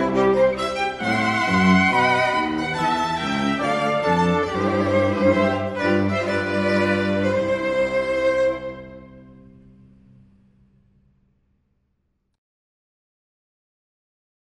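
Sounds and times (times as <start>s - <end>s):
string quartet playing: 0.0s - 9.9s.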